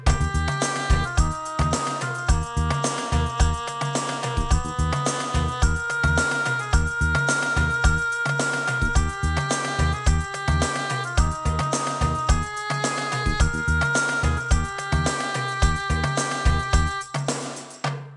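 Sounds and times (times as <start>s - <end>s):
background music: 0.1s - 17.8s.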